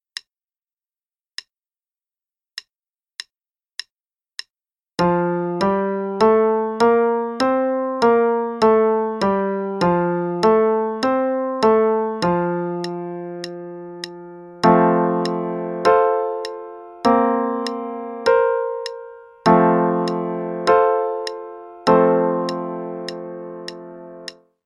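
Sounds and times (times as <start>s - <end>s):
piece in F major: 5.0s - 24.4s.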